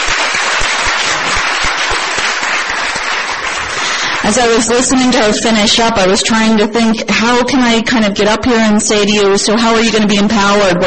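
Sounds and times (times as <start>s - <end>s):
audience applause: 0.0s - 4.6s
speech: 4.3s - 10.8s.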